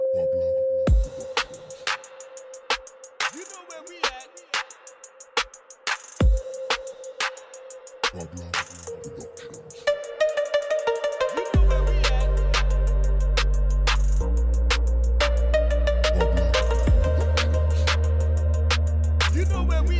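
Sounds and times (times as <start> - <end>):
reggae dancehall music: 0.9 - 19.9.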